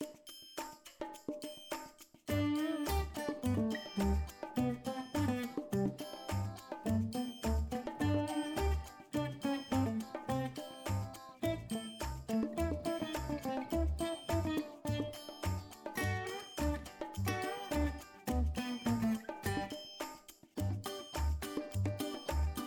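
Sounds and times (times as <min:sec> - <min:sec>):
cheerful music: 0:02.3 - 0:22.6.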